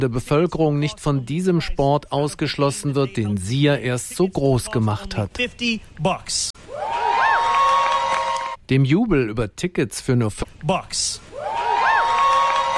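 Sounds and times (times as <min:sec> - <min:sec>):
speech: 0:00.0 - 0:07.6, 0:08.7 - 0:11.6
crowd cheering with whoops and shouts: 0:06.6 - 0:08.6, 0:11.3 - 0:12.7.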